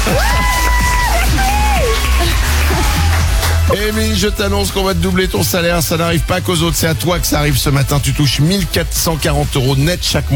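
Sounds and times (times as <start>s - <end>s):
stadium crowd cheering sound effect: 0.0s - 4.4s
speech: 3.7s - 10.3s.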